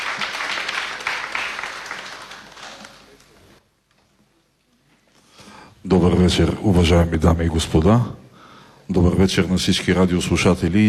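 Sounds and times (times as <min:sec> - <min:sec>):
audience applause: 0:00.0 - 0:03.6
speech: 0:05.9 - 0:08.2, 0:08.9 - 0:10.8.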